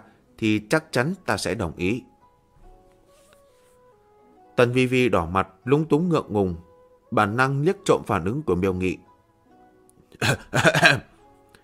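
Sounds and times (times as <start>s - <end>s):
speech: 0.4s - 2.1s, 4.6s - 9.1s, 10.2s - 11.1s
dry throat-clearing coughs: 10.2s - 11.1s.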